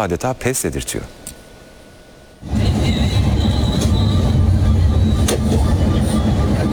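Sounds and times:
speech: 0:00.0 - 0:01.3
intercity passenger bus on the Van–Bursa route cruising on a highway: 0:02.3 - 0:06.7.

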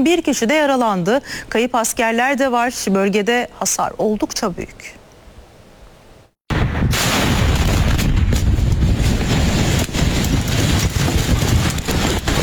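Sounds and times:
speech: 0:00.0 - 0:05.0
explosions at a military ammunition depot: 0:06.5 - 0:12.4.

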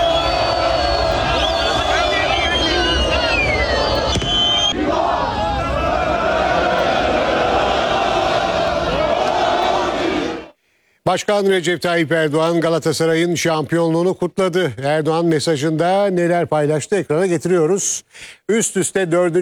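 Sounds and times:
Galatasaray fans singing and chanting at a championship celebration: 0:00.0 - 0:10.6
speech: 0:11.1 - 0:19.4.

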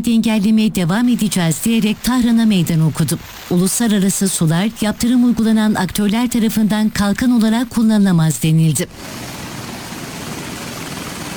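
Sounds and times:
speech: 0:00.0 - 0:09.3
helicopter rumbling during a US troops' raid on a seized oil tanker: 0:08.9 - 0:11.3.

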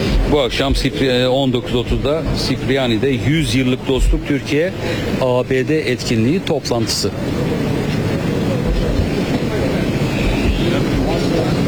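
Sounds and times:
Turkish president's car and security convoy pulling away: 0:00.0 - 0:11.6
road noise: 0:00.0 - 0:11.6
speech: 0:00.3 - 0:07.7.

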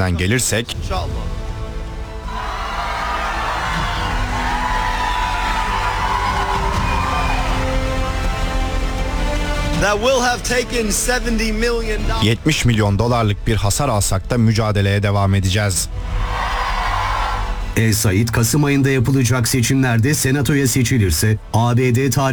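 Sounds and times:
speech: 0:00.0 - 0:01.4, 0:09.8 - 0:16.5, 0:17.8 - 0:22.3
crowd cheering and clapping at a primary election victory speech: 0:02.2 - 0:09.7, 0:16.0 - 0:17.8.

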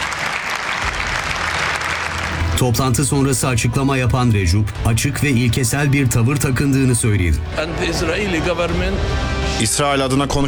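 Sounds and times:
audience applause in a congress hall: 0:00.0 - 0:02.5
speech: 0:02.6 - 0:10.4.

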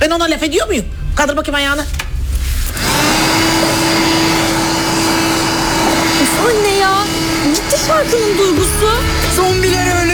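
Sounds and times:
speech: 0:00.1 - 0:02.0, 0:06.4 - 0:10.1
household vacuum cleaner running: 0:02.6 - 0:10.1.

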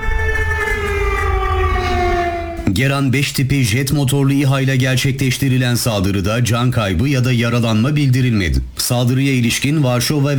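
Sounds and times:
air raid sirens wailing in the Lublin region of Poland during a drone alert: 0:00.0 - 0:02.8
low rumble: 0:00.0 - 0:03.0
speech: 0:02.8 - 0:10.3.

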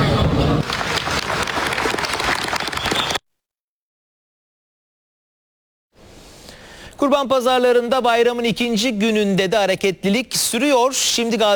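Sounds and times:
crowd applauding: 0:00.0 - 0:03.2
speech: 0:07.0 - 0:11.5.

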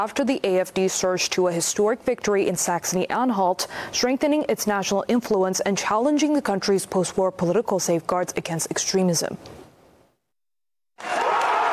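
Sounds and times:
speech: 0:00.0 - 0:09.6
AfD supporters cheering at Saxony-Anhalt exit poll results: 0:11.0 - 0:11.7.

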